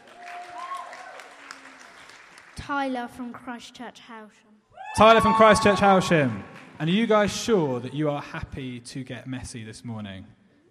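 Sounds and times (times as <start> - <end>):
audience applause: 0.0 - 2.6, 5.0 - 7.3
speech: 2.6 - 10.4.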